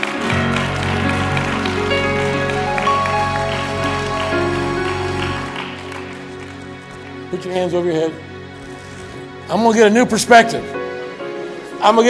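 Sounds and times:
audience clapping: 0:00.0 - 0:07.8
sustained music: 0:00.0 - 0:12.0
speech: 0:07.4 - 0:08.3, 0:09.5 - 0:10.8, 0:11.8 - 0:12.0.

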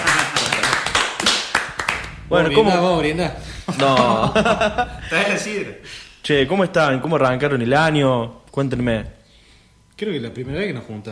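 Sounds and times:
clapping: 0:00.0 - 0:02.1
speech: 0:02.3 - 0:09.2, 0:10.0 - 0:11.1
laughter: 0:03.4 - 0:05.2.

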